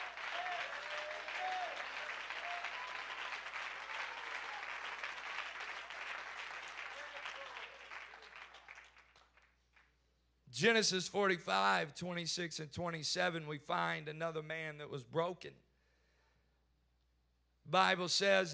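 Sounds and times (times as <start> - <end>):
audience clapping hands: 0.0 - 10.0
speech: 10.6 - 15.6, 17.7 - 18.5.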